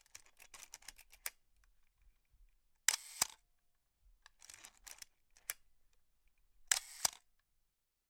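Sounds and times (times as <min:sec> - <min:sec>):
35mm SLR camera clicks with different shutter speeds: 0:02.9 - 0:03.4, 0:06.7 - 0:07.2.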